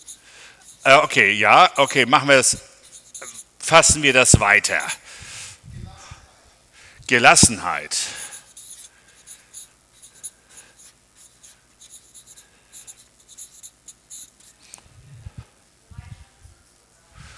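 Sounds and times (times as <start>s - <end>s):
pen writing on paper: 0.0s - 1.1s, 2.8s - 3.5s, 8.2s - 14.6s
speech: 0.8s - 2.7s, 3.7s - 5.0s, 7.1s - 8.2s
people talking softly: 15.8s - 17.3s.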